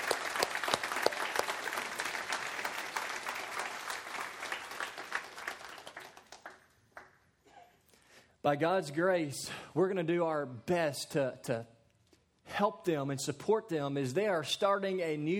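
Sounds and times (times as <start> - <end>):
church audience applause: 0.0 - 7.1
speech: 8.4 - 11.8, 12.6 - 15.3.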